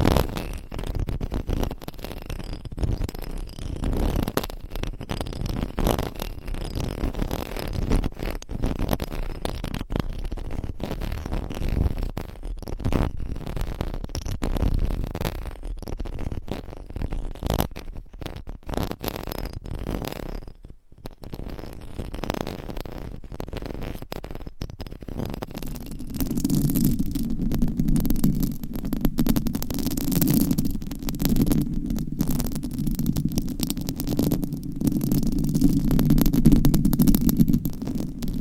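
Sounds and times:
scratching and rubbing on a microphone: 0.0s - 38.4s.

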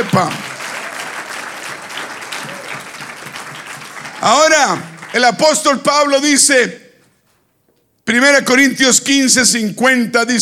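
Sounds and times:
speech: 0.0s - 0.4s, 4.2s - 6.8s, 8.1s - 10.3s
audience applause: 0.0s - 5.6s.

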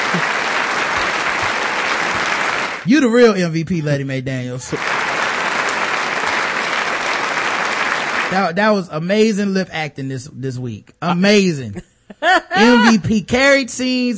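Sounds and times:
applause sound effect: 0.0s - 3.3s, 4.7s - 8.5s, 12.6s - 12.9s
laughter: 0.0s - 6.0s, 11.6s - 13.3s
speech: 0.1s - 0.3s, 2.8s - 5.0s, 8.3s - 14.1s.

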